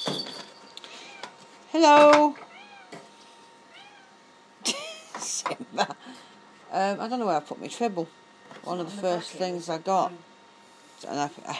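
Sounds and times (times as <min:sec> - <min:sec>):
speech: 0:01.8 - 0:02.4, 0:06.8 - 0:10.3, 0:11.0 - 0:11.5
cat meowing: 0:02.5 - 0:02.9, 0:03.7 - 0:04.2.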